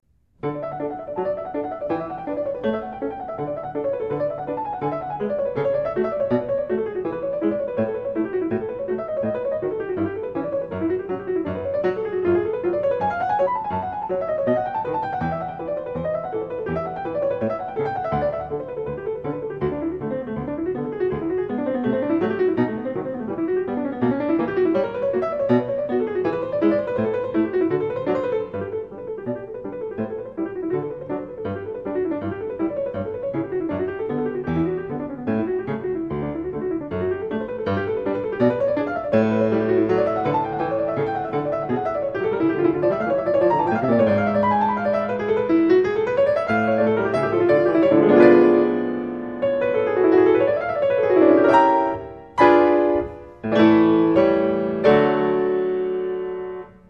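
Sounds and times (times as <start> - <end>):
classical piece in D major: 0.0 - 56.8.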